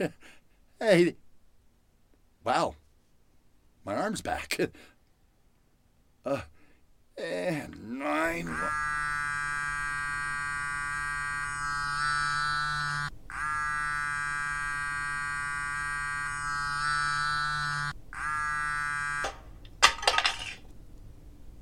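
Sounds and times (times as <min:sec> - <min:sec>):
speech: 0:00.0 - 0:01.2, 0:02.4 - 0:02.8, 0:03.8 - 0:04.9, 0:06.2 - 0:06.6, 0:07.2 - 0:09.1
mobile phone vibrating: 0:08.2 - 0:19.5
mobile phone falling with clattering knock: 0:19.2 - 0:20.6.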